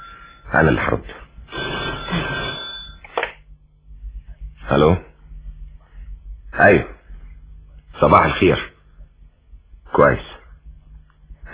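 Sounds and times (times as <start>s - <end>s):
telephone bell ringing in a home scene from a radio drama: 0.0s - 0.5s, 1.5s - 3.2s
speech: 0.5s - 1.3s, 4.7s - 5.1s, 6.6s - 6.9s, 8.0s - 8.7s, 10.0s - 10.3s.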